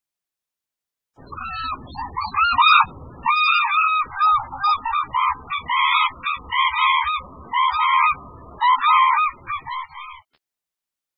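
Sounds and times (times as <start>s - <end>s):
hooded cranes trumpeting: 1.3s - 10.1s.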